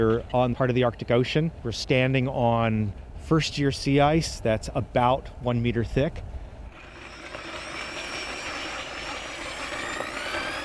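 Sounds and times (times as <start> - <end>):
speech: 0.0 - 6.3
drill boring through sea ice: 6.7 - 10.6.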